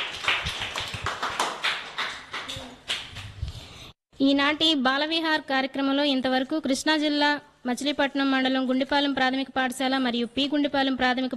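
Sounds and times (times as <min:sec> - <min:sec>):
audience clapping for school children after their performance: 0:00.0 - 0:03.4
speech: 0:04.2 - 0:11.3.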